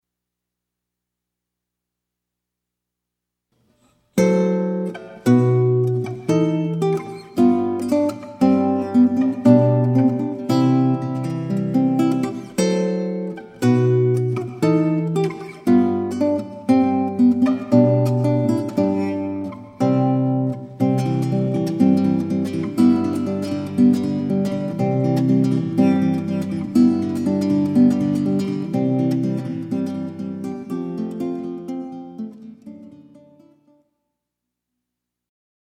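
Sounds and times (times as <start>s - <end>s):
classical guitar: 3.6s - 33.9s.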